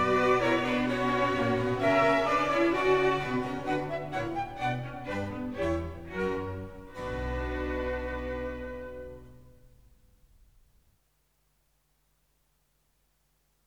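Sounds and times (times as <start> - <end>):
orchestral suite: 0.0 - 9.7.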